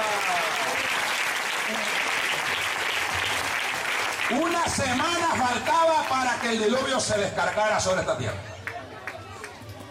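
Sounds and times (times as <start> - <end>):
audience applauding: 0.0 - 7.8
speech: 4.3 - 8.5.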